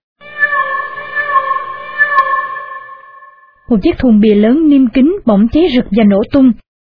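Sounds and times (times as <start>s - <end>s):
cat crying pitifully: 0.2s - 2.8s
speech: 3.7s - 6.7s.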